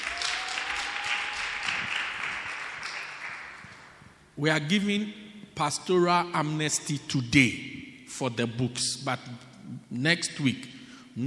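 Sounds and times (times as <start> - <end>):
people clapping: 0.0 - 4.2
speech: 4.4 - 11.2.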